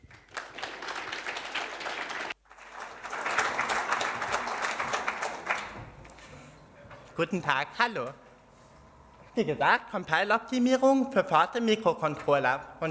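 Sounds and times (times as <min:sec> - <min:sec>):
warm audience applause: 0:00.0 - 0:05.9
speech: 0:07.2 - 0:08.2, 0:09.4 - 0:12.8.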